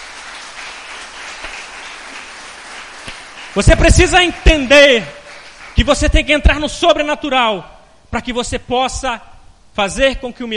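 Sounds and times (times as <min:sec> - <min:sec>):
audience applauding: 0:00.0 - 0:06.1
speech: 0:03.6 - 0:05.2, 0:05.8 - 0:10.5.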